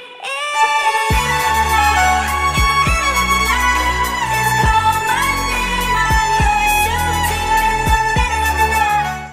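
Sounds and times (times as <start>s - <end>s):
violin: 0.2s - 9.3s.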